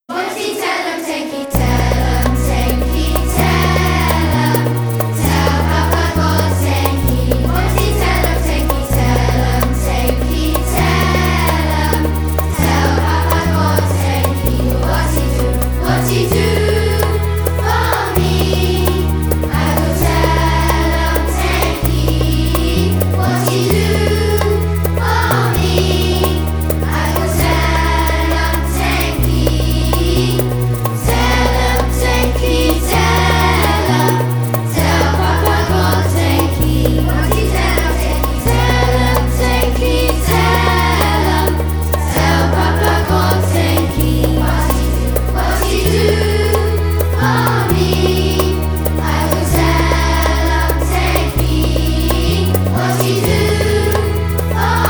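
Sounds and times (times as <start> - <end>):
Catholic Primary School children singing with backing music: 0.1 - 54.8.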